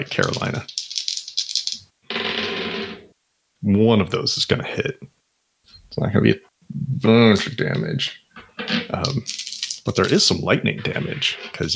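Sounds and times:
speech: 0.0s - 0.8s, 3.6s - 5.2s, 5.9s - 8.2s, 8.9s - 11.7s
pair of dice rolling across a hard surface: 0.0s - 1.9s, 9.0s - 10.3s.

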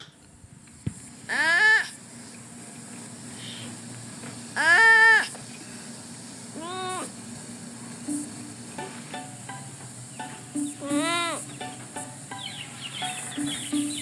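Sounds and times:
sloth calls: 1.3s - 2.0s, 3.4s - 3.8s, 4.6s - 5.4s, 10.1s - 14.0s.

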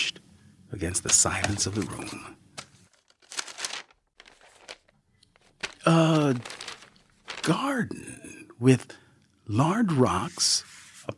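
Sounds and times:
speech: 0.7s - 2.4s, 5.9s - 6.6s, 7.4s - 10.7s
paper being crumpled and folded: 1.1s - 7.8s.

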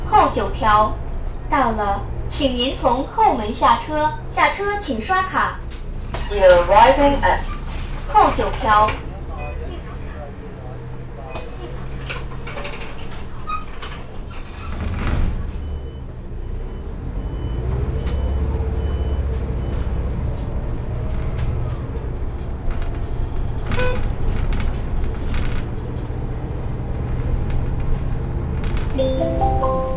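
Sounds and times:
city bus engine rumbling while pulling away from a stop: 0.0s - 29.9s
speech: 0.2s - 9.1s.

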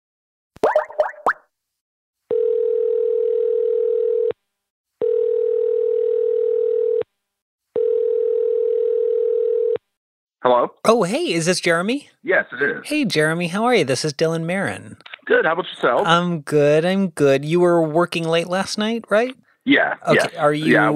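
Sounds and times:
phone ringback tones: 2.3s - 4.4s, 5.0s - 7.1s, 7.8s - 9.8s
speech: 10.5s - 20.9s.

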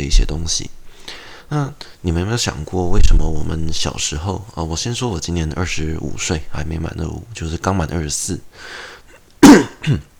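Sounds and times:
speech: 0.0s - 10.1s
person coughing: 9.4s - 10.1s.

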